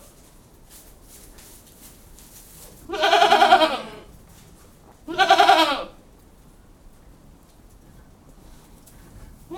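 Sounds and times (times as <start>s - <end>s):
goat bleating: 2.9s - 4.1s, 5.0s - 6.0s.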